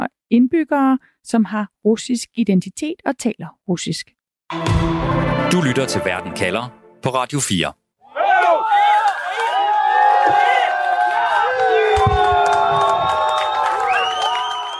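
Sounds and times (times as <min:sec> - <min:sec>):
speech: 0:00.3 - 0:07.8
large crowd cheering as a concrete monument falls in Riga: 0:08.0 - 0:14.7.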